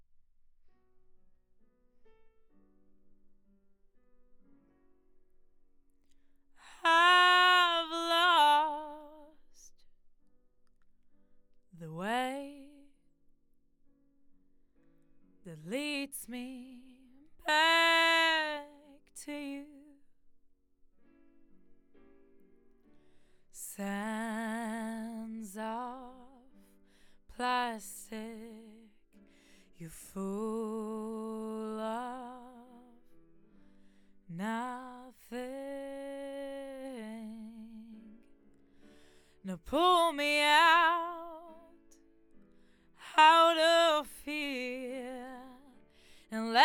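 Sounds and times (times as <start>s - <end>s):
vocals: 6.6s - 9.7s, 11.8s - 13.0s, 15.5s - 20.0s, 23.6s - 33.1s, 34.2s - 38.3s, 39.4s - 42.0s, 43.0s - 46.6s.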